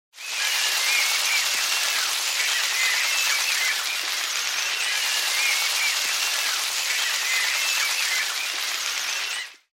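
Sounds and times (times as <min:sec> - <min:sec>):
applause: 0:00.2 - 0:09.7.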